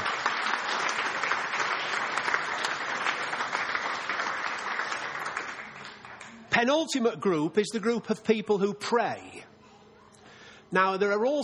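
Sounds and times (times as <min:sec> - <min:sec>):
audience applause: 0:00.0 - 0:06.4
speech: 0:06.6 - 0:09.5, 0:10.7 - 0:11.4.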